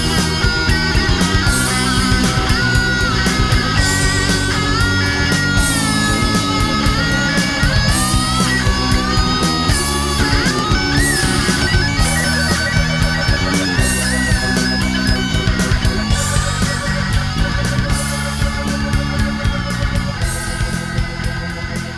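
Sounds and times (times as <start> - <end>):
karaoke singing: 0.0 - 21.9.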